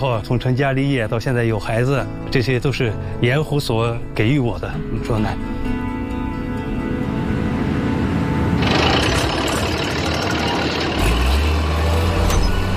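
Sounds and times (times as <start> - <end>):
speech: 0.0 - 5.8
steady low hum: 6.9 - 12.7
excavator engine starting at a salt lake: 8.4 - 12.7.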